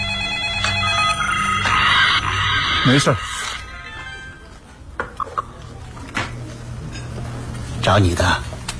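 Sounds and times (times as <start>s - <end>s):
telephone ringing: 0.0s - 4.4s
speech: 2.8s - 3.3s, 7.9s - 8.5s.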